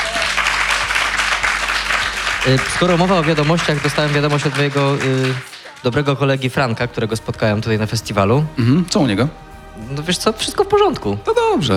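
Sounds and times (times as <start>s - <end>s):
applause for the festival crew: 0.0s - 6.4s
speech: 2.4s - 11.7s.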